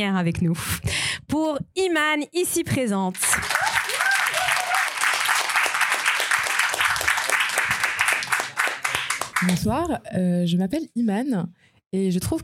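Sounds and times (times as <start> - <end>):
speech: 0.0 - 3.5, 9.4 - 12.4
audience applause: 3.2 - 9.7.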